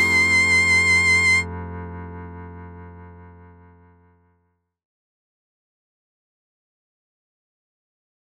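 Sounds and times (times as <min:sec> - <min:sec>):
slow-tempo romance music: 0:00.0 - 0:02.4.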